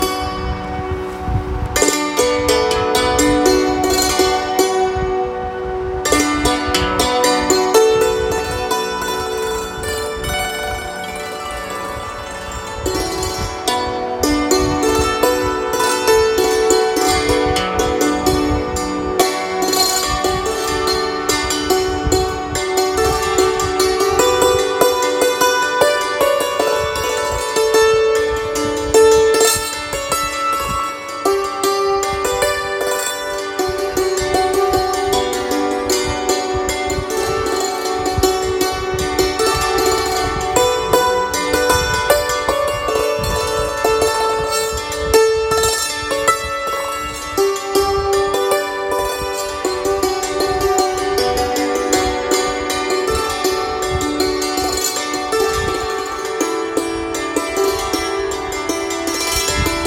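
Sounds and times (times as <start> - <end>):
santoor music: 0.0 - 59.8.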